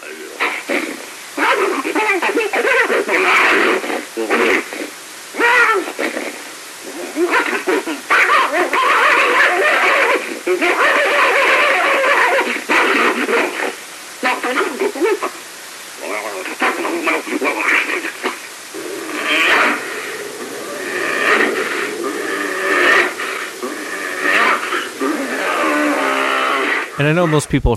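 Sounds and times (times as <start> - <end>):
fast chatter vocalizations: 0.0 - 15.4, 16.0 - 27.7
speech: 27.0 - 27.7.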